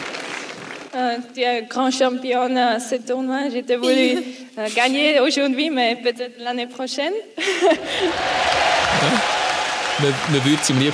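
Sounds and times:
speech: 1.0 - 9.4, 10.0 - 10.9
laughter: 7.4 - 9.3
audience applause: 7.8 - 10.9.

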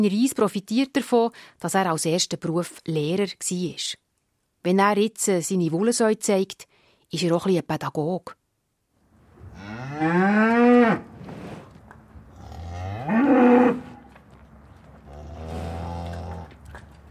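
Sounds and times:
speech: 0.0 - 4.0, 4.6 - 8.4, 9.6 - 11.1
Wagyu cattle mooing: 9.5 - 11.1, 12.3 - 14.1, 15.0 - 16.6.

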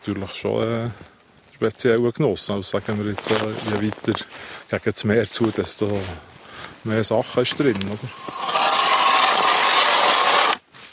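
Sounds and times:
speech: 0.0 - 8.8
drilling a hole in ice: 7.4 - 10.6.

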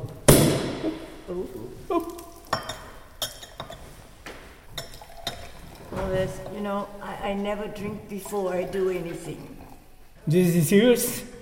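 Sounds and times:
speech: 1.3 - 2.1, 6.1 - 9.6, 10.3 - 11.3
champagne glasses clinking in a toast: 2.4 - 3.8, 4.7 - 6.6.

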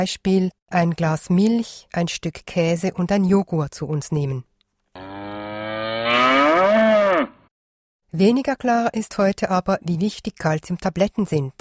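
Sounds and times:
speech: 0.0 - 4.5, 8.1 - 11.5
cow mooing: 5.0 - 7.5.

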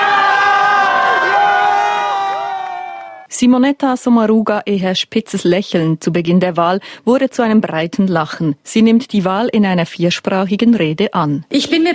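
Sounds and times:
crowd cheering outdoors on the Bundesplatz: 0.0 - 3.3
speech: 3.4 - 11.9.

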